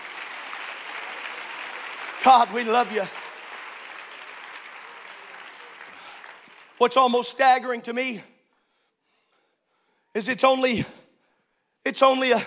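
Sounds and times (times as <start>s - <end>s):
audience clapping hands: 0.0s - 7.8s
speech: 2.2s - 3.2s, 6.8s - 8.3s, 10.1s - 11.0s, 11.9s - 12.4s.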